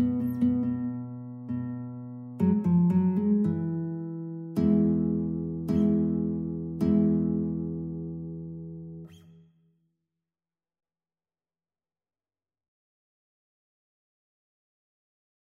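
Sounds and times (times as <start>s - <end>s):
minuet in E major on guitar: 0.0s - 9.5s.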